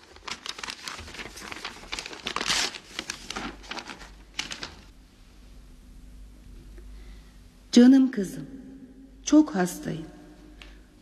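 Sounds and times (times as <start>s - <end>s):
paper envelope from a jewelry box being torn open: 0.0s - 4.9s
speech: 7.8s - 8.6s, 9.3s - 10.2s.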